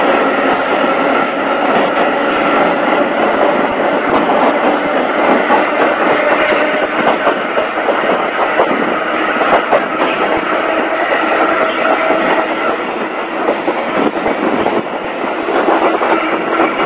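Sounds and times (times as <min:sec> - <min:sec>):
E101 electric locomotive running departing Iyama Station on the Oigawa Railway: 0:00.0 - 0:16.8.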